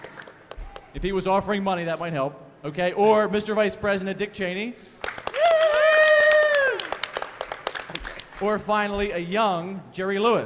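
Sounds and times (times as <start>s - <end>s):
crowd applause: 0.0s - 0.9s, 5.0s - 8.6s
speech: 1.0s - 5.0s, 8.4s - 10.4s
crowd cheering woo: 5.2s - 7.2s.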